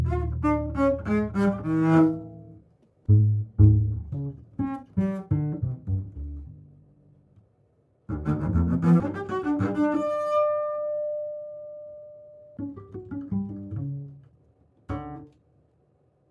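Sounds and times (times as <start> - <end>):
contemporary double bass: 0.0 - 6.9, 8.1 - 11.0, 12.6 - 14.3, 14.9 - 15.3.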